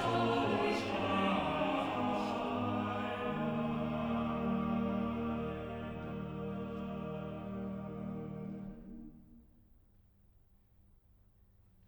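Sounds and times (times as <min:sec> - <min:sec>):
choir singing a motet: 0:00.0 - 0:09.4.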